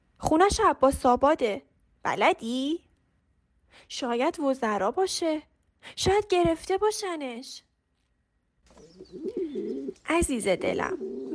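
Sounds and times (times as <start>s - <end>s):
speech: 0.3s - 2.8s, 3.7s - 7.7s, 9.1s - 11.1s
pigeons cooing: 8.8s - 11.3s.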